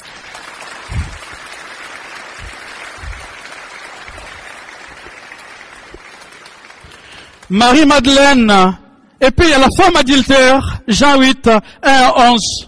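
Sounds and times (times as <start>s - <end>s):
audience applauding: 0.0s - 7.6s
speech: 7.5s - 12.6s.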